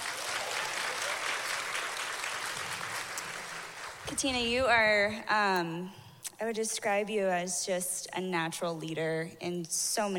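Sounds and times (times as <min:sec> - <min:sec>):
audience applause: 0:00.0 - 0:04.1
speech: 0:04.1 - 0:10.1.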